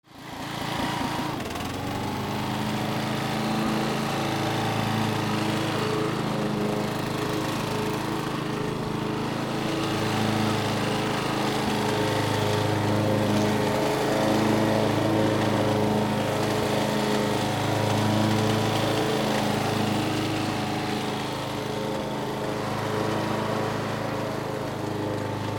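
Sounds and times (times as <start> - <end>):
vehicles: 0.1 - 25.5.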